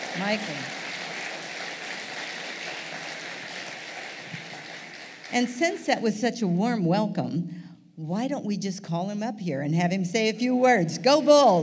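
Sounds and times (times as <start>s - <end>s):
crowd applauding: 0.0s - 5.8s
speech: 0.2s - 0.8s, 5.3s - 11.6s.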